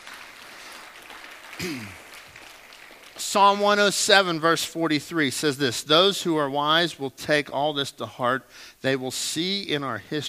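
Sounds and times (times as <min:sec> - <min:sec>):
audience applause: 0:00.0 - 0:03.2
speech: 0:01.6 - 0:02.0, 0:03.3 - 0:10.2.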